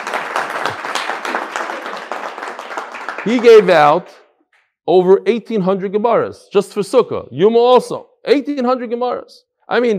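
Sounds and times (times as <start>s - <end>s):
audience applause: 0.0s - 4.1s
speech: 3.2s - 4.2s, 4.8s - 9.9s.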